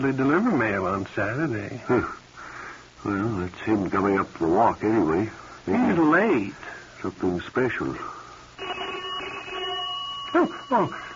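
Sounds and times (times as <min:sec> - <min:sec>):
speech: 0:00.0 - 0:02.2, 0:03.0 - 0:08.8, 0:10.3 - 0:11.1
doorbell buzzing: 0:08.6 - 0:11.1.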